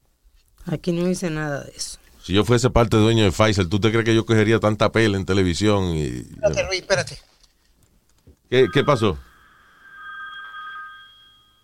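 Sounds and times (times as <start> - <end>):
speech: 0.7 - 7.3, 8.5 - 9.3
telephone ringing with a high electronic tone: 8.5 - 11.6.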